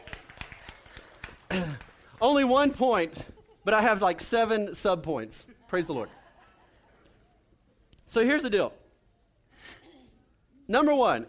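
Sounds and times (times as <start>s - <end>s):
audience clapping: 0.0s - 3.2s
speech: 1.5s - 6.2s, 8.1s - 8.8s, 10.7s - 11.2s
laughter: 3.0s - 4.2s, 5.4s - 7.4s.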